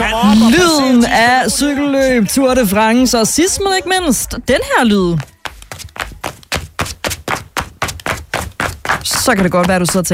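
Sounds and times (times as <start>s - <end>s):
speech: 0.1s - 5.3s, 9.3s - 10.1s
flip-flops slapping: 5.2s - 10.1s.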